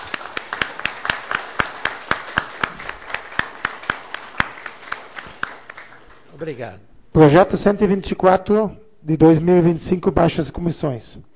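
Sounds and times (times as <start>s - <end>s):
audience applause: 0.0s - 6.3s
speech: 6.4s - 11.3s.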